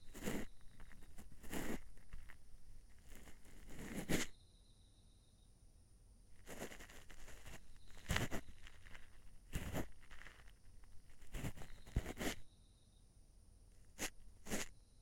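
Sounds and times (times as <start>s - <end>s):
ear cleaning ASMR in the left ear: 0.0s - 4.3s, 6.4s - 12.4s, 13.9s - 14.7s.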